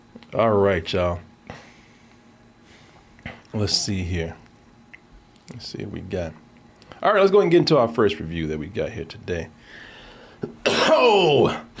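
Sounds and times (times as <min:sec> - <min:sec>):
speech: 0:00.3 - 0:01.3, 0:03.5 - 0:04.4, 0:05.5 - 0:06.4, 0:07.0 - 0:11.7
loud sneeze: 0:10.6 - 0:11.3.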